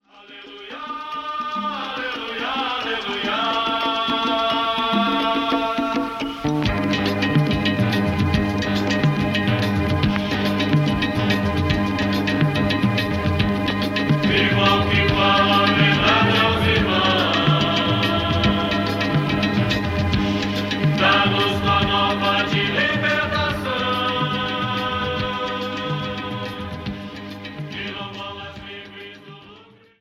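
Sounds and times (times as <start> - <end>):
music: 0.0 - 29.9.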